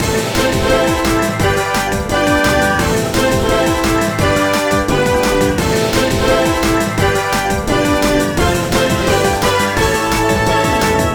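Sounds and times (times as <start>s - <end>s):
game background music: 0.0s - 11.1s.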